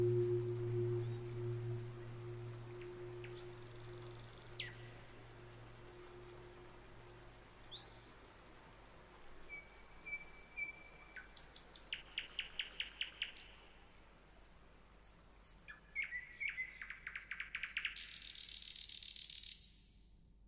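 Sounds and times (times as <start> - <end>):
bird whistles and chirps: 0.1 - 4.9, 9.2 - 13.5, 14.9 - 19.8.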